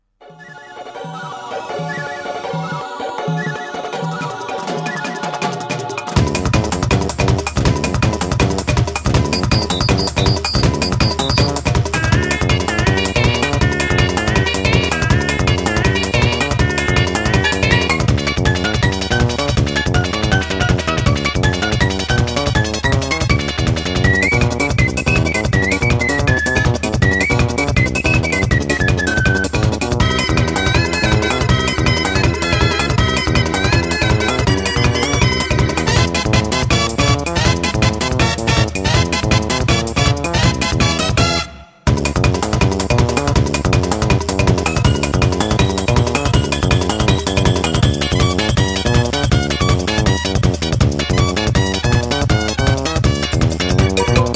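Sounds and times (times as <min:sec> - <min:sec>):
congratulation music: 0:00.2 - 0:54.3.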